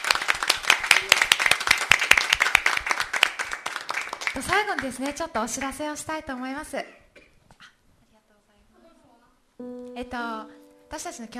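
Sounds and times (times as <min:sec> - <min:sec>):
crowd clapping: 0:00.0 - 0:05.8
speech: 0:04.4 - 0:07.0, 0:09.7 - 0:11.3.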